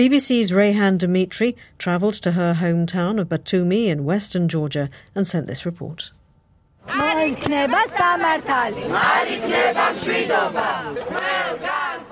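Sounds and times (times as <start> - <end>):
speech: 0.0 - 6.2, 6.9 - 11.8
protesters shouting and chanting outside a court: 6.9 - 12.1.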